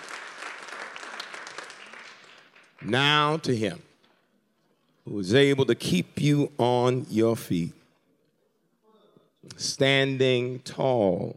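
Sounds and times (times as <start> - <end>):
audience clapping hands in praise: 0.0 - 3.6
speech: 2.8 - 3.9, 5.0 - 7.8, 9.4 - 11.3.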